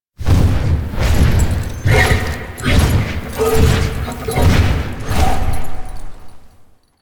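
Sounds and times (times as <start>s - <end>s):
horse wings flapping: 1.0s - 5.3s.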